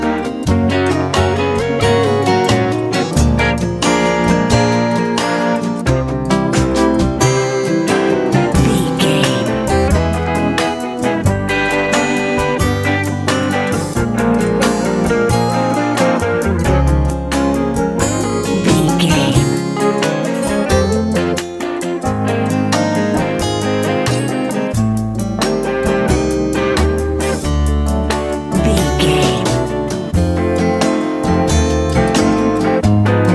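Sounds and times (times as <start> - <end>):
bright light pop music: 0.0 - 33.3.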